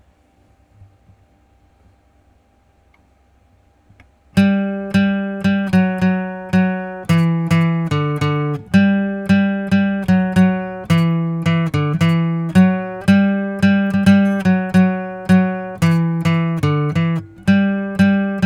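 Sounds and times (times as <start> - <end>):
guitalele: 4.4 - 18.4.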